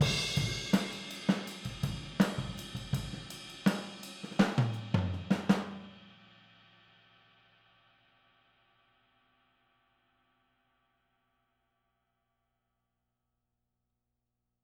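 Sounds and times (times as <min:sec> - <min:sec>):
boogaloo outro drums recorded with overhead microphone: 0:00.0 - 0:06.0.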